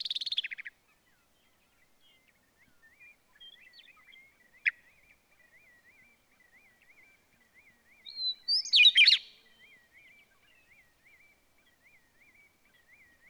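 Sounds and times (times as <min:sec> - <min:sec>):
bird song with high thin notes, twittering and dry trill: 0:00.0 - 0:13.2.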